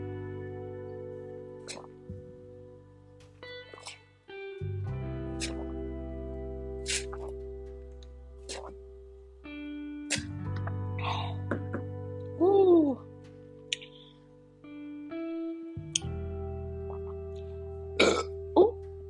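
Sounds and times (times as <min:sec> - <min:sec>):
low steady hum: 0:00.0 - 0:19.0
person burping after drinking: 0:11.0 - 0:12.0, 0:18.0 - 0:18.7.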